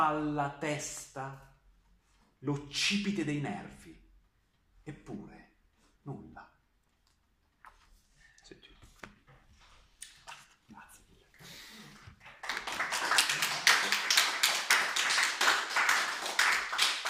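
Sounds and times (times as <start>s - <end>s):
speech: 0.0s - 1.5s, 2.4s - 4.0s, 4.8s - 5.4s, 6.0s - 6.5s
audience applause: 12.1s - 17.0s.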